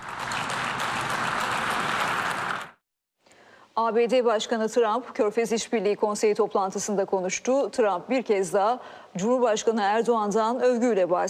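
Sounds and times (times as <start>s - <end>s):
applause from delegates: 0.0s - 2.8s
speech: 3.8s - 11.2s.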